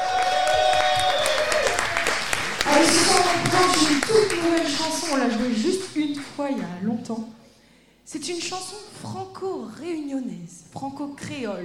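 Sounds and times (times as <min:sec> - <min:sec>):
audience applause: 0:00.0 - 0:05.8
speech: 0:02.8 - 0:07.4, 0:08.1 - 0:11.6.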